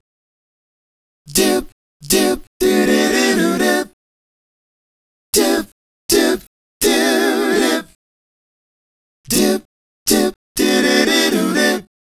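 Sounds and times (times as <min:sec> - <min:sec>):
male group singing hip-hop and R&B vocals: 0:01.3 - 0:03.9, 0:05.4 - 0:07.9, 0:09.3 - 0:11.9.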